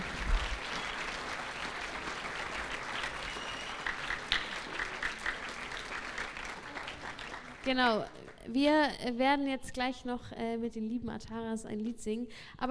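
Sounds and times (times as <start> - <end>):
audience applause: 0.0 - 8.4
speech: 7.6 - 12.6.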